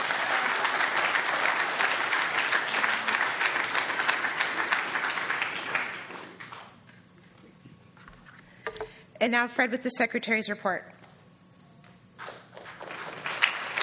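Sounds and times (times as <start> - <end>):
audience applause: 0.0 - 6.7, 12.2 - 13.8
speech: 9.2 - 11.0.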